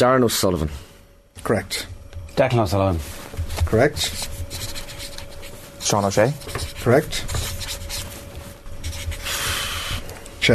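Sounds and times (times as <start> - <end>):
speech: 0.0 - 4.4, 5.8 - 7.4
pen scribbling on paper signing a signature: 3.5 - 8.2, 8.8 - 10.0.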